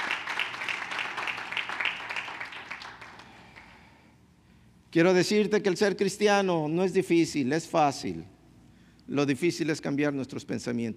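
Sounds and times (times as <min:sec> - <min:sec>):
audience applause: 0:00.0 - 0:03.7
speech: 0:04.9 - 0:08.3, 0:09.1 - 0:10.9.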